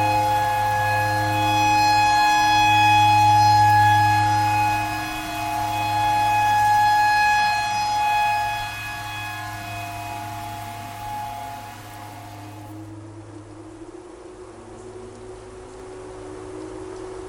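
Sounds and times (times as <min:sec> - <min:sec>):
clarinet playing pentatonic tornado siren tune: 0:00.0 - 0:12.9.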